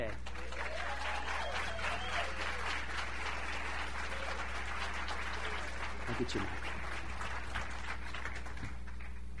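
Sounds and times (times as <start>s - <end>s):
audience applause: 0.0s - 9.3s
speech: 6.2s - 6.7s.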